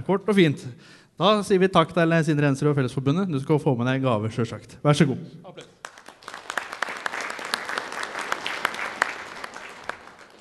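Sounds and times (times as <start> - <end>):
speech: 0.0 - 5.7
audience applause: 5.8 - 10.3.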